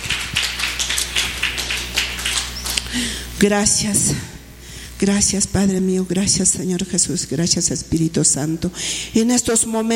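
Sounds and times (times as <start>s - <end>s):
crowd clapping hands: 0.0s - 3.0s
low hum: 0.0s - 9.9s
speech: 2.9s - 4.3s, 5.0s - 9.9s.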